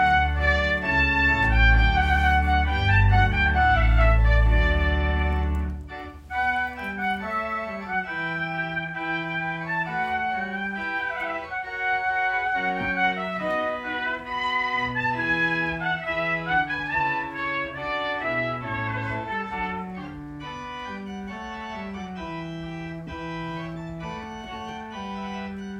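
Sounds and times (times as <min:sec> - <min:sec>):
organ and trumpet prelude: 0:00.0 - 0:25.7.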